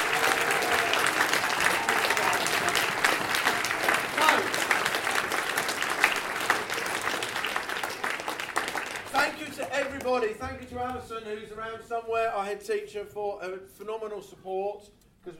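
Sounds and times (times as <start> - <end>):
audience applause: 0.0 - 10.2
speech: 10.8 - 15.3.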